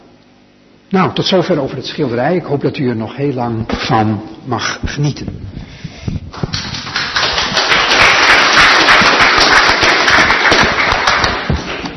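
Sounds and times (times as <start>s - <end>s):
speech: 0.9s - 5.7s
audience applause: 6.3s - 11.9s.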